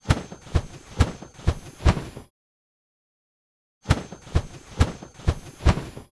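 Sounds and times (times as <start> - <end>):
Pegasus wings flapping: 0.0 - 2.3, 3.9 - 6.1.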